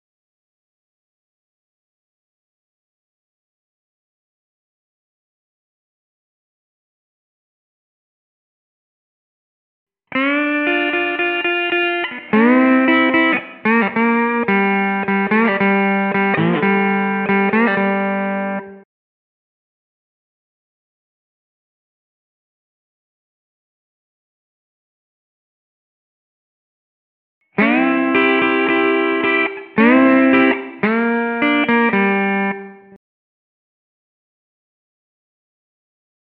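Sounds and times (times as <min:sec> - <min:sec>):
slide guitar in G at 110 BPM: 0:10.1 - 0:18.8, 0:27.6 - 0:32.9.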